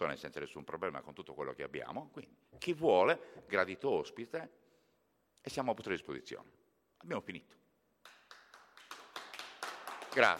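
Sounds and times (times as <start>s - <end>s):
speech: 0.0s - 4.6s, 5.4s - 7.6s, 10.1s - 10.3s
small group clapping: 8.0s - 10.3s.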